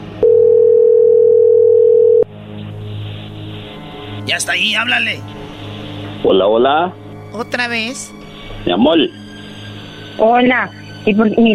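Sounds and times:
quiet hum: 0.0 - 11.5
telephone dial tone: 0.2 - 2.2
speech: 4.3 - 5.4, 6.2 - 9.2, 10.2 - 11.5.

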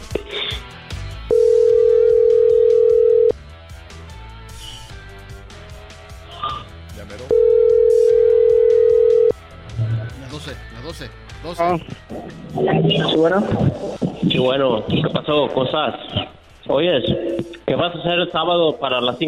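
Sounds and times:
faint voices and music: 0.0 - 19.2
telephone dialing and ringing tone: 1.3 - 3.4, 7.3 - 9.4
speech: 11.6 - 19.2.

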